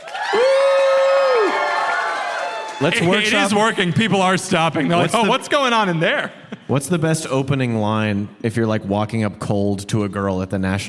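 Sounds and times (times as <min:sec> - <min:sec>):
crowd cheering: 0:00.0 - 0:07.3
speech: 0:02.8 - 0:10.8.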